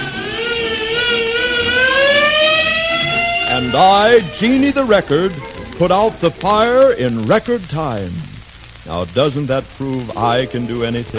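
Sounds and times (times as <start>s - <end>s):
fire engine siren: 0.0s - 6.6s
speech: 3.7s - 11.1s.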